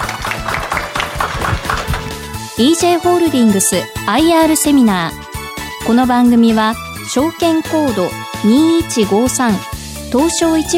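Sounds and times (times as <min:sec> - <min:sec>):
audience applause: 0:00.0 - 0:02.4
speech: 0:02.6 - 0:05.3, 0:05.9 - 0:10.7.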